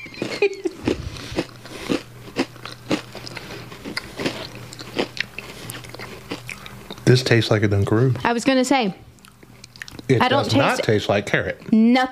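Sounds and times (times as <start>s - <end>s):
biting and chewing on a Reese's treat: 0.0s - 7.2s, 9.1s - 10.1s
low steady hum: 0.0s - 12.1s
speech: 0.4s - 0.7s, 7.1s - 9.1s, 10.1s - 12.1s.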